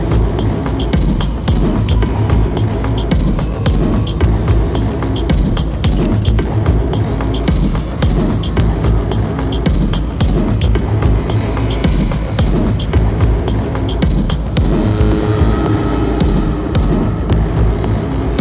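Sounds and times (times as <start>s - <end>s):
black hole dark atmospheric sound effect: 0.0s - 18.3s.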